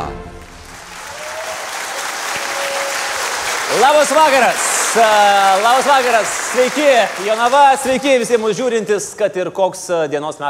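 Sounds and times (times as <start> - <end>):
audience applause welcoming the host Andrius Tapinas at a live comedy show in Jonava: 0.5 - 8.9
speech: 3.8 - 10.4.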